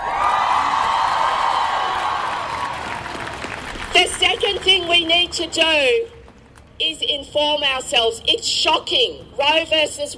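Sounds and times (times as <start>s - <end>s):
audience cheering: 0.0s - 3.7s
speech: 4.5s - 6.2s, 6.8s - 10.1s.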